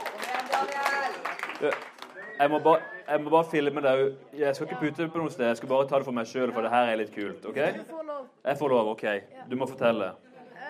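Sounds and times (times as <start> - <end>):
crowd applause: 0.0 - 3.0
speech: 1.6 - 10.3.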